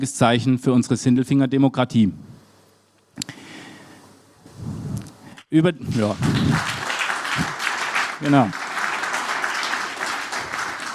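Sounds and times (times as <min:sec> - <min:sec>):
speech: 0:00.0 - 0:02.3, 0:05.5 - 0:06.8, 0:08.2 - 0:08.6
audience applause: 0:05.9 - 0:10.9.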